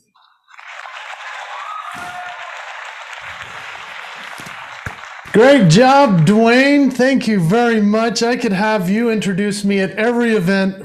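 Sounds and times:
audience applause welcoming a speaker at a motivational speaker showcase: 0.2s - 6.2s
speech: 5.3s - 10.8s.

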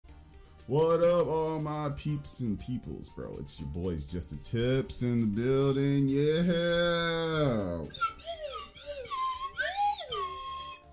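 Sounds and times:
speech: 0.7s - 8.4s
slide whistle: 7.9s - 10.9s.

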